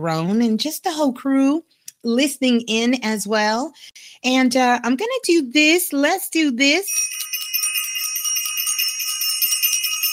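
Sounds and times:
speech: 0.0s - 7.3s
bell ringing: 6.9s - 10.1s.

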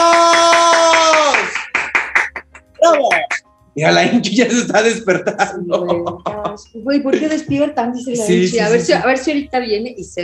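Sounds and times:
audience applause: 0.0s - 3.4s
speech: 2.9s - 10.2s.

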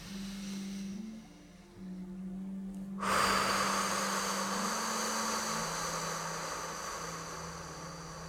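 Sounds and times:
deep breathing: 0.0s - 8.2s.

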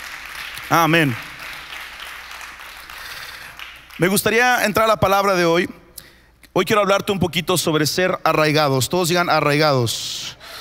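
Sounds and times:
audience applause: 0.0s - 4.0s
speech: 0.7s - 1.3s, 4.0s - 5.8s, 6.6s - 10.4s.

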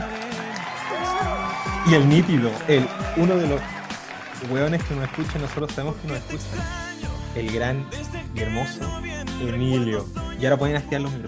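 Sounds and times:
applause and cheering sound effect: 0.0s - 6.5s
speech: 1.8s - 3.8s, 4.4s - 6.8s, 7.4s - 11.2s.

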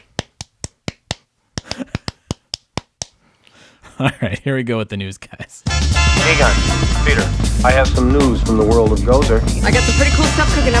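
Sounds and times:
crisp hand claps: 0.0s - 3.2s
speech: 4.0s - 10.7s.

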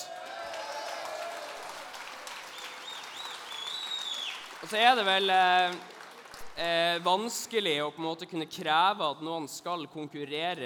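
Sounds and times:
applause: 0.0s - 7.4s
speech: 4.6s - 6.0s, 6.6s - 10.6s.

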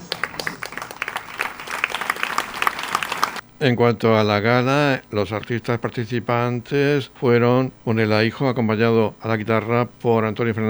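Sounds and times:
audience applause: 0.0s - 3.4s
speech: 3.6s - 10.6s.

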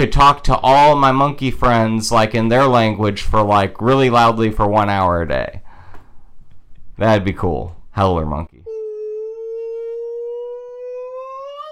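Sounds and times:
speech: 0.0s - 5.6s, 7.0s - 8.6s
emergency broadcast system test siren wailing: 8.7s - 11.7s.

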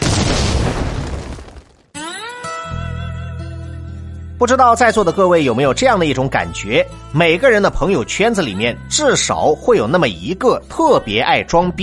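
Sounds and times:
explosion sound effect: 0.0s - 2.0s
speech: 4.4s - 11.8s.

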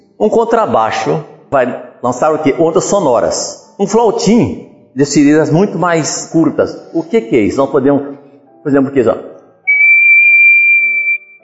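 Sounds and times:
speech: 0.2s - 9.3s
person whistling a high note: 9.7s - 11.4s.

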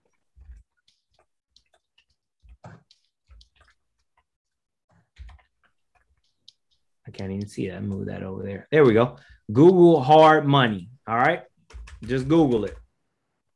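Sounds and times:
typing on a computer keyboard: 0.0s - 4.3s, 4.9s - 9.0s, 11.1s - 12.9s
speech: 7.1s - 12.8s.

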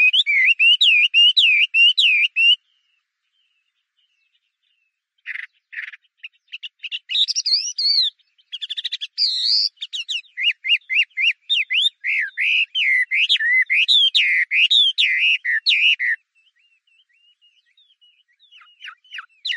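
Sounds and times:
Chinese hwamei song of slurred whistles: 0.0s - 2.6s, 7.2s - 16.2s, 18.5s - 19.5s.

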